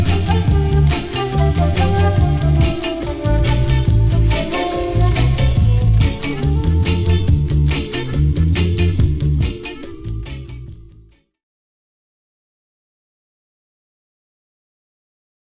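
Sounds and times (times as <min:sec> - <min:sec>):
flute: 0:00.0 - 0:10.8.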